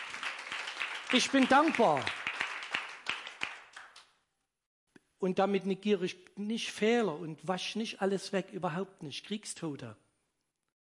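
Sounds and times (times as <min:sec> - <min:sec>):
congregation clapping during a church sermon: 0:00.0 - 0:04.2
speech: 0:01.1 - 0:02.2, 0:05.2 - 0:10.0.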